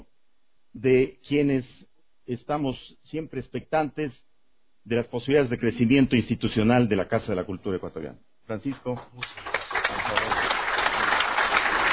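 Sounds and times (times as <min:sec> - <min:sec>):
speech: 0:00.8 - 0:09.5
audience applauding in a hall: 0:09.2 - 0:11.9.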